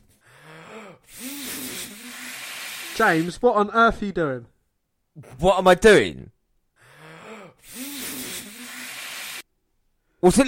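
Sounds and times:
person blowing up a balloon: 0:01.1 - 0:03.2, 0:07.6 - 0:09.4
speech: 0:03.0 - 0:04.5, 0:05.2 - 0:06.4, 0:10.2 - 0:10.4.

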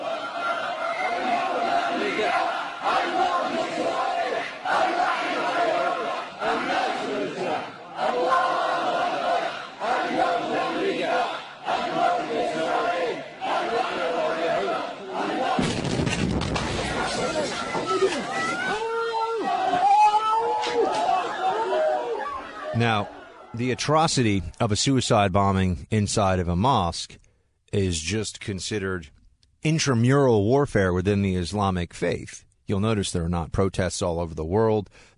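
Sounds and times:
Shia Houthi crowd chanting slogans inside a mosque: 0:00.0 - 0:16.0, 0:16.6 - 0:19.9, 0:20.5 - 0:23.6
speech: 0:23.6 - 0:35.1.

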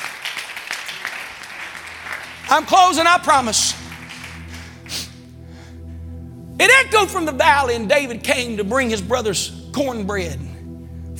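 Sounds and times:
audience clapping hands: 0:00.0 - 0:05.4
speech: 0:02.5 - 0:03.8, 0:06.6 - 0:10.5.

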